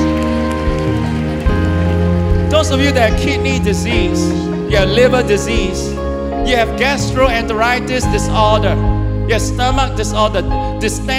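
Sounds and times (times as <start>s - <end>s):
audience clapping hands: 0.0s - 4.7s
speech: 2.6s - 11.1s.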